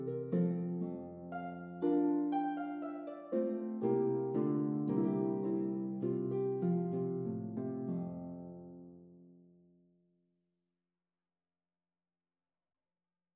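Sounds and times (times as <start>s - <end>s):
Celtic harp in F major: 0.0s - 9.3s.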